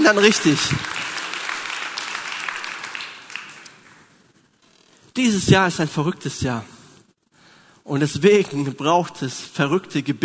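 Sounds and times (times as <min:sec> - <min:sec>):
audience clapping: 0:00.0 - 0:04.2
speech: 0:00.1 - 0:01.0, 0:05.2 - 0:06.7, 0:07.9 - 0:10.2.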